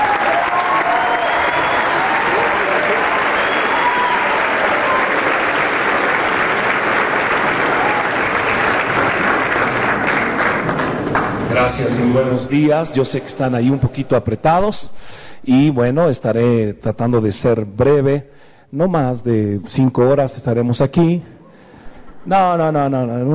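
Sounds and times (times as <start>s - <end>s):
loud applause from a large crowd: 0.0s - 12.1s
whistles: 0.9s - 2.1s, 3.2s - 5.2s
speech: 11.6s - 21.4s, 22.2s - 23.3s.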